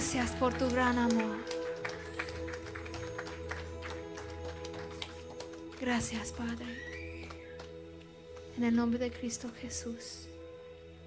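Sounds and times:
audience applause: 0.0 - 8.5
speech: 0.1 - 1.6, 5.8 - 6.9, 8.6 - 10.2.

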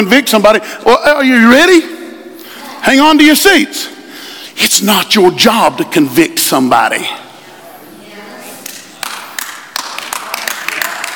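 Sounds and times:
speech: 0.0 - 2.0, 2.8 - 4.0, 4.6 - 7.3
sparse audience clapping: 8.6 - 11.1.

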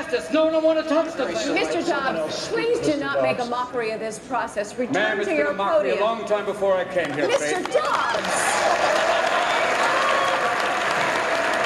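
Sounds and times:
speech: 0.1 - 9.2
crowd applause: 7.1 - 11.6
faint cheering: 7.8 - 11.6.

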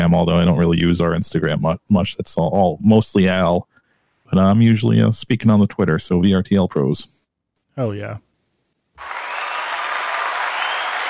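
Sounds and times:
speech: 0.1 - 3.7, 4.3 - 7.2, 7.8 - 8.3
studio audience applause: 9.0 - 11.0.

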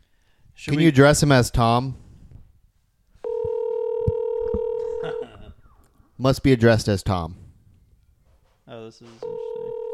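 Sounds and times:
speech: 0.6 - 2.0, 6.2 - 7.4, 8.7 - 9.5
telephone dial tone: 3.2 - 4.8, 9.2 - 9.9.

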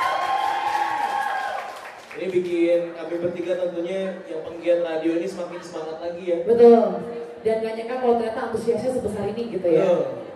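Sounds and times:
audience cheering and clapping: 0.0 - 2.8
speech: 2.2 - 10.2.

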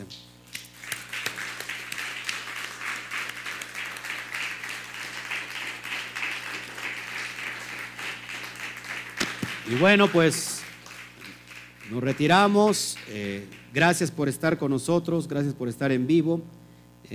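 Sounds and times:
audience applause: 0.8 - 14.0
speech: 9.7 - 10.5, 11.9 - 17.1.

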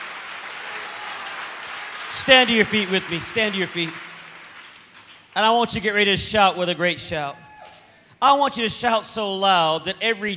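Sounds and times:
audience clapping hands: 0.0 - 6.0
speech: 2.1 - 4.1, 5.4 - 7.4, 8.2 - 10.3.

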